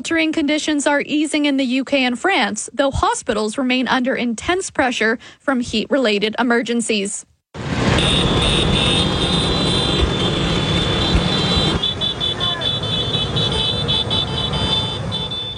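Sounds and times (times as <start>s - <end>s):
speech: 0.0s - 8.8s
Vespa scooter engines buzzing through city streets: 7.7s - 15.5s
scooter horn toots: 7.9s - 15.5s.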